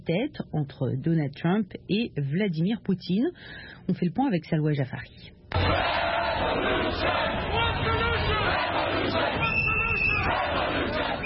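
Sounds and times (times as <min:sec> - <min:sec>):
speech: 0:00.0 - 0:07.6
protesters roaring and shouting: 0:05.5 - 0:11.2
high whistle-like tone: 0:09.4 - 0:10.3.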